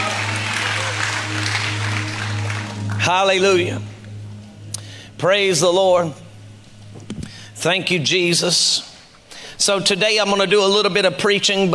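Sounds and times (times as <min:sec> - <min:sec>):
audience applauding: 0:00.0 - 0:03.6
low hum: 0:00.0 - 0:09.4
speech: 0:03.1 - 0:03.9, 0:05.2 - 0:06.2, 0:07.6 - 0:08.9, 0:09.6 - 0:11.7.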